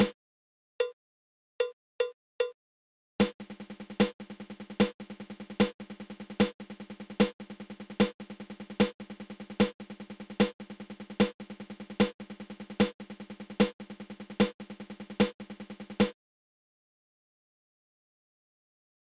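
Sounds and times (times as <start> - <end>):
seven stroke drum roll: 3.2 - 16.2.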